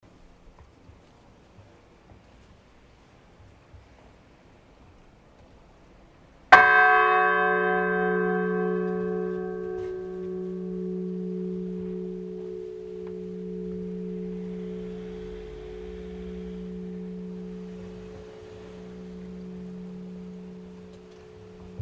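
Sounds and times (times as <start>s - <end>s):
bell ringing: 6.6s - 21.8s.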